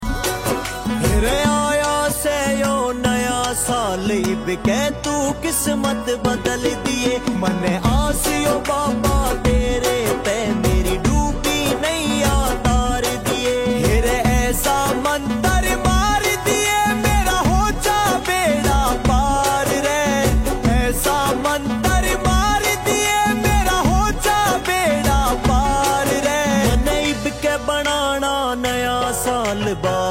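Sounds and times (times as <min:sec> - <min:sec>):
devotional New Year song ringtone: 0:00.0 - 0:30.0.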